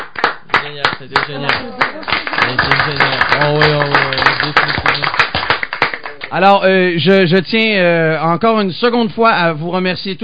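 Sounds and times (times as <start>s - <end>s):
audience applause: 0.0s - 6.4s
speech: 0.7s - 5.2s, 6.2s - 10.2s.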